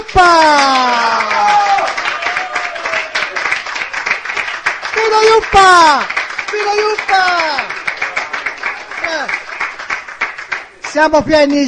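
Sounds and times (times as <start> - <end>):
speech: 0.1 - 1.1, 5.2 - 7.7, 11.0 - 11.6
audience applause: 0.2 - 11.1.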